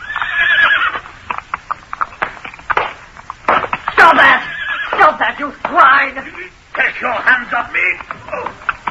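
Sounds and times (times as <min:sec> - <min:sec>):
horse neighing and whinnying: 0:00.0 - 0:01.1, 0:04.1 - 0:05.1
speech: 0:05.4 - 0:08.7.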